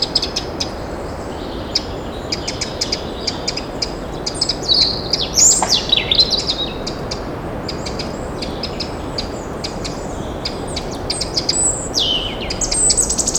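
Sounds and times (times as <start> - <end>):
forest birds: 0.0 - 13.3.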